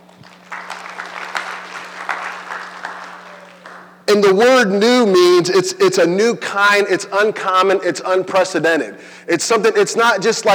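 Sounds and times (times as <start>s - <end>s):
crowd applauding: 0.0s - 4.0s
faint low hum: 0.0s - 10.5s
speech: 4.1s - 10.5s.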